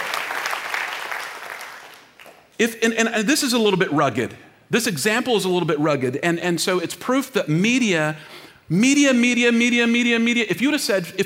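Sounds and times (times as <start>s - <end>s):
audience clapping: 0.0s - 2.6s
speech: 2.6s - 11.2s.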